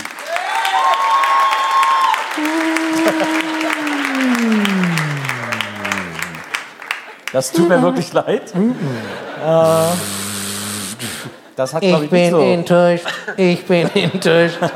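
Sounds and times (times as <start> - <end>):
audience applause on a quiz show: 0.0 - 7.9
laughter: 2.4 - 6.6, 7.6 - 10.2, 12.8 - 14.7
speech: 7.4 - 10.2, 11.6 - 14.7.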